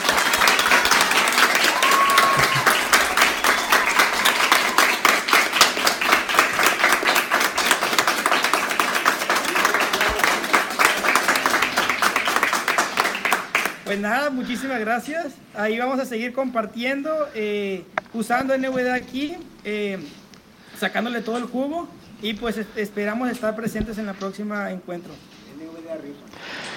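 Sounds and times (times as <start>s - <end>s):
audience applause: 0.0s - 13.9s
speech: 14.0s - 20.2s, 20.8s - 25.3s.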